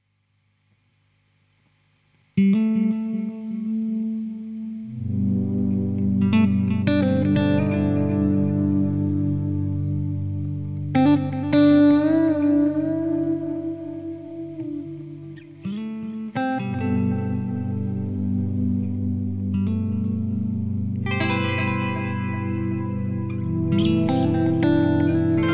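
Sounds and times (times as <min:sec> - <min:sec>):
unaccompanied session performance: 0:02.8 - 0:25.5.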